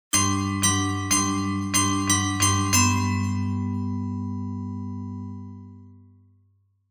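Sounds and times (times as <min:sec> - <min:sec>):
music box: 0:00.2 - 0:05.4.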